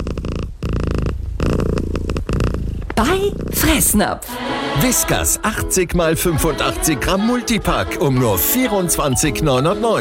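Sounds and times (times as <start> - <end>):
cat purring: 0.0 - 5.7
speech: 3.0 - 9.9.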